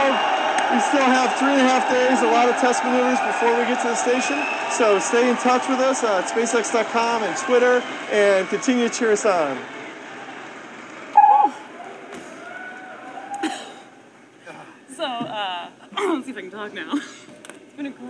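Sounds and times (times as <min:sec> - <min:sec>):
people cheering: 0:00.0 - 0:10.4, 0:11.1 - 0:13.4.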